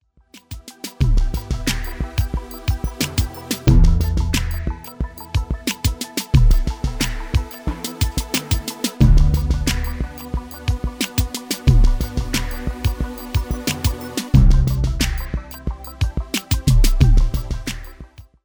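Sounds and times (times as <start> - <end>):
transformation trance music: 0.4 - 18.3.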